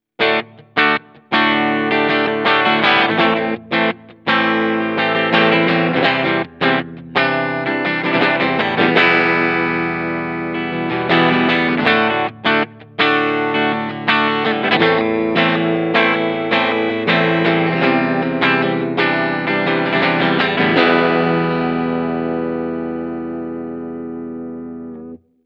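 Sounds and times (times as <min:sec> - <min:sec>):
Schecter C-1 Exotic clean electric guitar on split pickup: 0:00.2 - 0:25.3.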